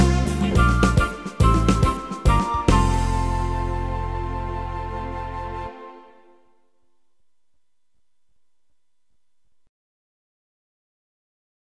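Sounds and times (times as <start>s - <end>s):
disco music: 0.0s - 5.2s.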